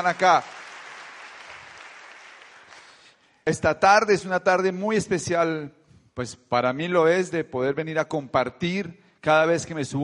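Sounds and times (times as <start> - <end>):
speech: 0.0 - 0.6, 3.4 - 10.0
audience applause for newcomers: 0.0 - 3.0.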